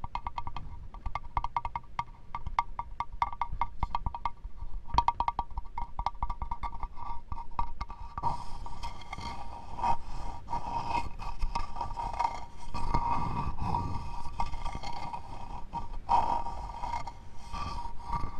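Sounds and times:
sharp knocks: 0.0 - 6.8
crisp taps on wood: 0.0 - 8.3
scratchy rubbing on wood: 3.2 - 18.3.

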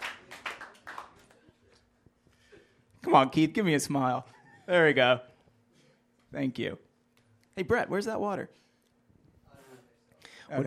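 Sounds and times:
audience applause: 0.0 - 1.4
speech: 3.1 - 5.3, 6.3 - 6.9, 7.6 - 8.6, 10.5 - 10.6.

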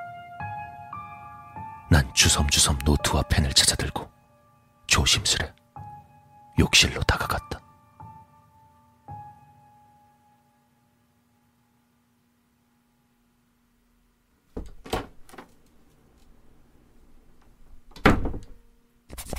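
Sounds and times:
speech: 1.9 - 4.2, 4.9 - 5.6, 6.6 - 7.6
bathroom door opening and closing: 14.5 - 15.6, 17.4 - 18.6.

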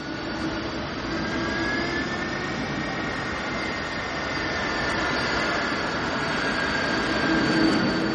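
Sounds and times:
jet airplane taxiing along runway: 0.0 - 8.1.

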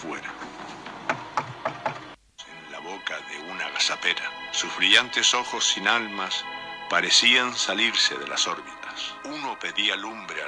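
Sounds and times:
steady low hiss: 0.0 - 10.4
knocking on a door: 1.0 - 2.2
speech: 3.9 - 10.4.

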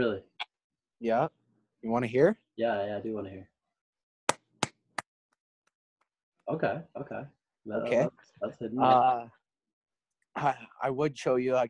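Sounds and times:
speech: 0.0 - 0.3, 1.0 - 3.5, 6.5 - 9.4, 10.4 - 11.6
claps made with one hand: 4.3 - 5.1.

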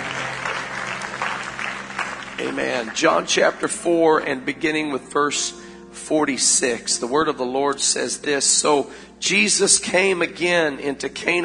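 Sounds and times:
audience hand clap applause: 0.0 - 3.7
speech: 2.4 - 11.4.

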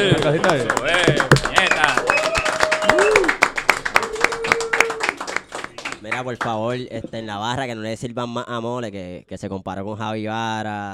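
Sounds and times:
speech: 0.0 - 1.5, 6.2 - 10.9
clapping applause: 0.0 - 6.8.

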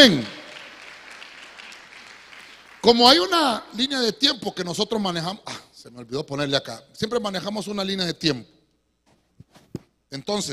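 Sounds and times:
speech: 0.0 - 0.3, 2.8 - 8.5, 10.1 - 10.5
audience clapping: 0.0 - 3.5.

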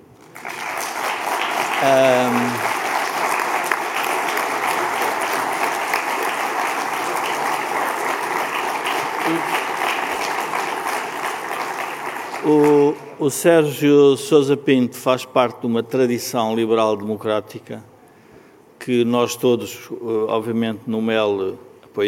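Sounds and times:
audience applause: 0.0 - 13.0
speech: 1.8 - 2.6, 12.4 - 17.9, 18.9 - 22.0.

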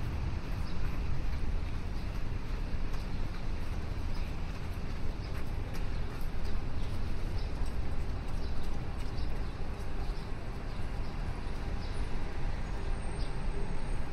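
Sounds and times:
city traffic rumble along the river: 0.0 - 14.1.

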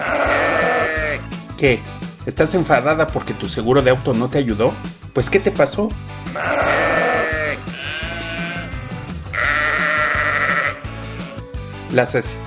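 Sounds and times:
sheep bleating: 0.0 - 1.3, 6.2 - 11.3
speech: 1.6 - 7.0, 11.9 - 12.4.

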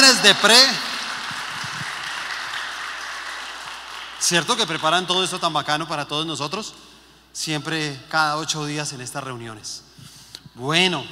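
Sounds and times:
audience applause: 0.0 - 5.1
speech: 0.2 - 0.9, 4.2 - 11.1.

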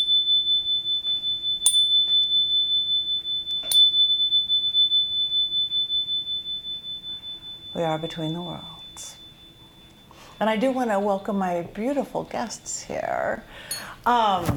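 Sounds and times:
small high-pitched bell ringing: 0.0 - 12.3, 13.6 - 14.1
speech: 7.8 - 9.2, 10.4 - 14.5.

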